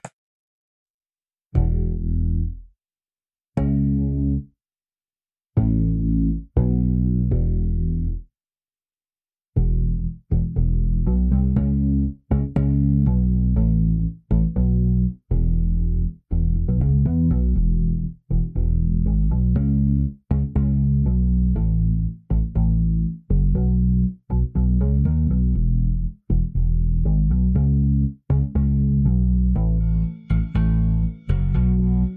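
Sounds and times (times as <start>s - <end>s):
bass: 1.5s - 2.8s, 3.6s - 4.6s, 5.6s - 8.3s, 9.6s - 32.1s.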